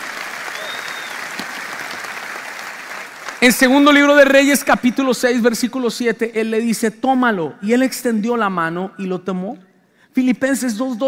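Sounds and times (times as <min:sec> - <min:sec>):
audience applauding: 0:00.0 - 0:03.8
speech: 0:03.4 - 0:11.0.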